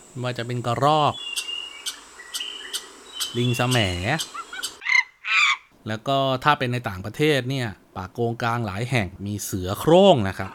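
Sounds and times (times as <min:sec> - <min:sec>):
forest birds chirping: 0:00.0 - 0:05.7
speech: 0:00.2 - 0:01.4, 0:03.3 - 0:04.4, 0:05.8 - 0:10.5.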